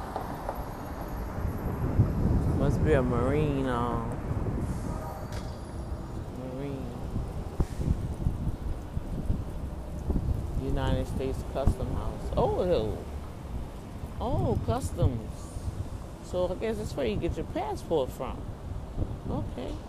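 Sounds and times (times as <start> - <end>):
buses passing by on a street: 0.0 - 14.2, 15.2 - 16.5
speech: 2.8 - 4.2, 10.8 - 13.1, 14.2 - 15.4, 16.3 - 19.8.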